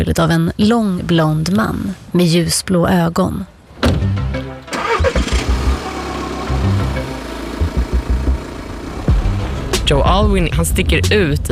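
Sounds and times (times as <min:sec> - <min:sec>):
speech: 0:00.0 - 0:04.3, 0:09.9 - 0:11.5
car engine starting: 0:03.8 - 0:11.0.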